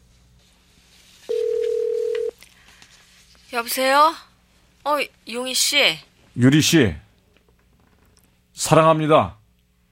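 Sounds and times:
telephone call being dialed: 0:01.4 - 0:02.3
speech: 0:03.5 - 0:07.0, 0:08.6 - 0:09.4.

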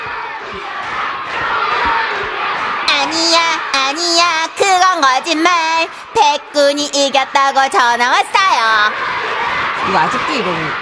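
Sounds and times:
team cheering at school sports day: 0:00.0 - 0:10.7
speech: 0:05.0 - 0:09.1, 0:09.8 - 0:10.7.

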